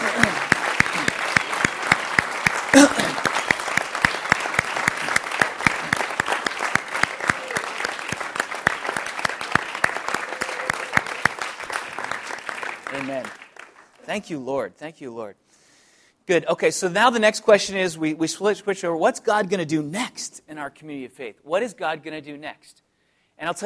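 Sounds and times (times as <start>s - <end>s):
audience clapping: 0.0s - 14.2s
speech: 14.2s - 15.6s, 16.3s - 22.8s, 23.4s - 23.6s.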